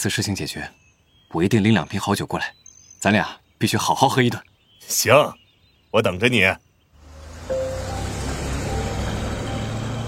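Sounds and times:
speech: 0.0s - 6.7s
car driving away beyond a courtyard wall: 7.0s - 10.0s.

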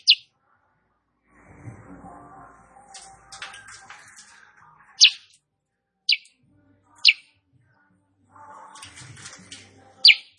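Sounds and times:
female sooty-headed bulbul chirping song: 0.0s - 0.3s, 5.0s - 5.3s, 6.1s - 6.4s, 7.0s - 7.3s, 10.0s - 10.3s.

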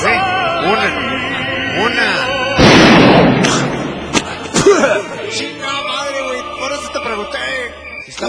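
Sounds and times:
speech: 0.6s - 2.4s
gunshot: 2.6s - 4.5s.

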